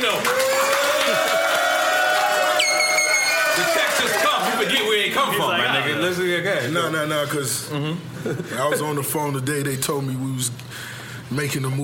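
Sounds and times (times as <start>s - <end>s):
crowd cheering and shouting: 0.0s - 5.4s
high whistle: 2.6s - 3.6s
speech: 5.2s - 11.8s.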